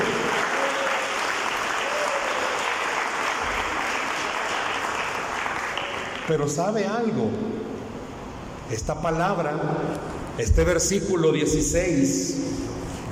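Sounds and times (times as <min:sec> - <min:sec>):
audience applauding: 0:00.0 - 0:06.3
speech: 0:06.3 - 0:07.7, 0:08.7 - 0:12.7.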